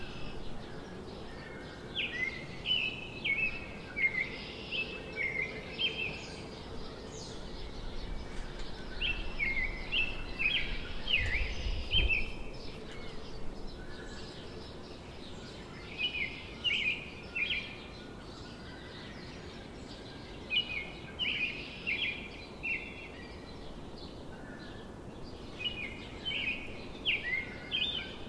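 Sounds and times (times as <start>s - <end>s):
Carolina wren singing: 0.0s - 28.2s
house sparrows chirping: 0.0s - 28.2s
red-winged blackbirds calling: 0.0s - 28.2s.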